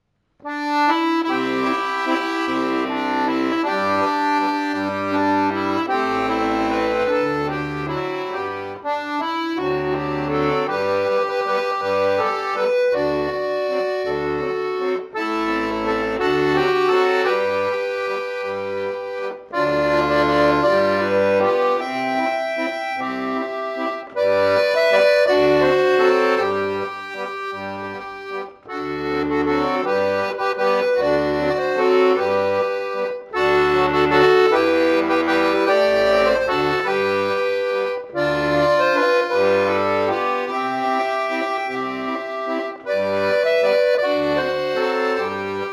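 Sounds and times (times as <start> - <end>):
accordion: 0.0 - 45.7.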